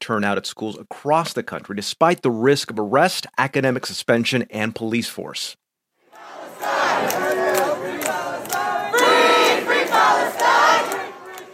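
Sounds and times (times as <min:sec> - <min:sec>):
speech: 0:00.1 - 0:05.6
pro-Palestinian demonstrators chanting on Columbia University's campus: 0:06.1 - 0:11.5.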